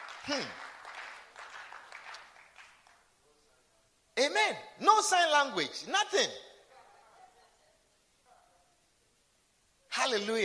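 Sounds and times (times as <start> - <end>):
audience clapping: 0.0 - 3.1
speech: 0.2 - 0.6, 4.5 - 6.5, 10.1 - 10.4.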